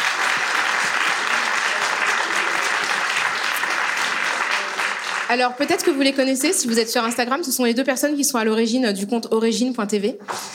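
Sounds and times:
audience applause: 0.0s - 7.0s
speech: 5.3s - 10.5s.

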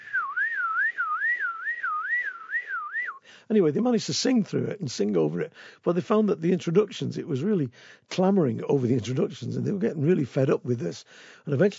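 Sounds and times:
person whistling an imitation of a car alarm: 0.0s - 3.2s
speech: 3.5s - 11.7s.

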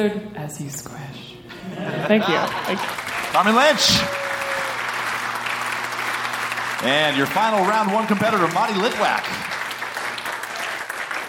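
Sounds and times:
speech: 0.0s - 4.2s, 6.8s - 9.4s
laughter: 1.5s - 4.8s
audience applause: 2.3s - 11.2s.

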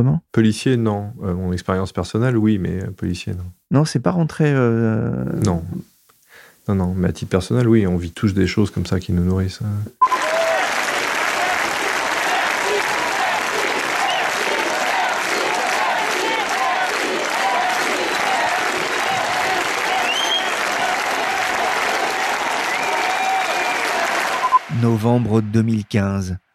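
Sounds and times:
speech: 0.0s - 5.9s, 6.7s - 10.2s, 25.0s - 26.4s
crowd applauding police officers: 10.0s - 25.6s.

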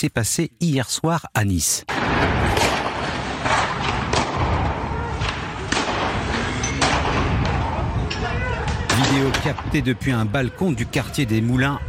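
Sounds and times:
speech: 0.0s - 2.8s, 9.1s - 11.8s
gunfire from military weapons in a street shootout in Nice: 1.9s - 7.9s
rumbling noise: 1.9s - 11.8s.

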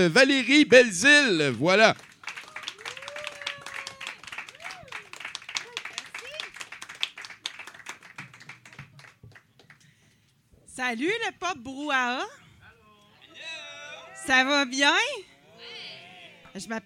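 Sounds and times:
speech: 0.0s - 2.1s, 10.8s - 12.4s, 14.3s - 15.3s, 16.5s - 16.8s
crowd applauding: 0.9s - 10.0s
whoops and whistled cheers: 2.5s - 5.1s.

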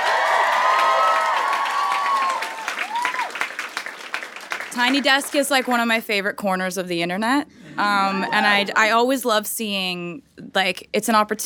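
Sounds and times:
audience applause: 0.0s - 5.4s
speech: 4.8s - 11.4s.

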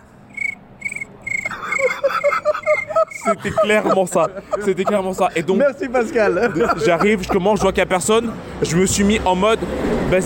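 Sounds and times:
crickets chirping sound effect: 0.3s - 5.0s
laughter: 1.4s - 8.3s
speech: 3.3s - 10.2s.

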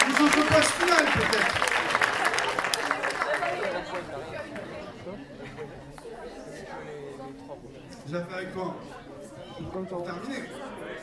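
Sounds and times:
audience clapping and cheering: 0.0s - 4.9s
lively crowd murmur: 0.0s - 11.0s
speech: 0.2s - 1.9s, 6.8s - 9.0s, 9.6s - 11.0s.

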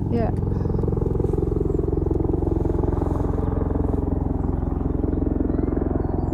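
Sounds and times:
helicopter flying overhead: 0.0s - 6.3s.

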